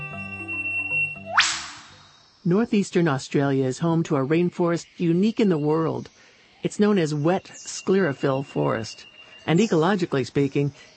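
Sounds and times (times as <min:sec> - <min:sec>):
eastern whipbird whip-crack call: 0:01.3 - 0:02.0
speech: 0:02.4 - 0:10.9.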